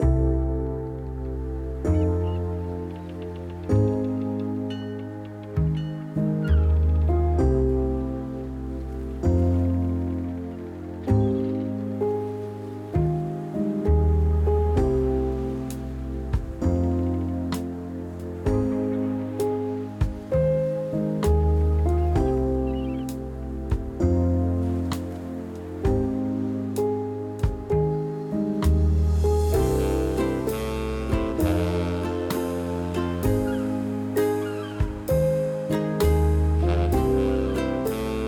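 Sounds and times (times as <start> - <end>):
music in a captain's cabin: 0.0 - 38.2.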